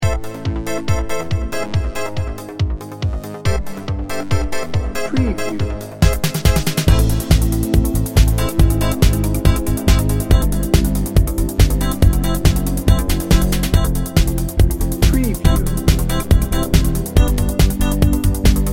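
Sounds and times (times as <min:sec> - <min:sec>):
fashion pulse music: 0:00.0 - 0:18.7.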